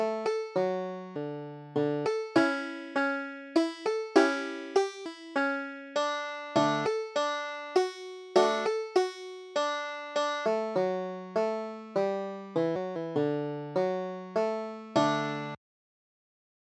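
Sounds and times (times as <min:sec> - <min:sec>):
banjo playing a Christmas carol: 0:00.0 - 0:15.6.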